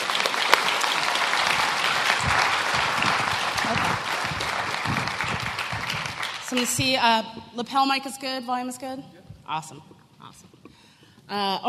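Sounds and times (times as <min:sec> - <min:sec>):
audience applause: 0:00.0 - 0:06.8
speech: 0:06.6 - 0:09.9, 0:11.3 - 0:11.6.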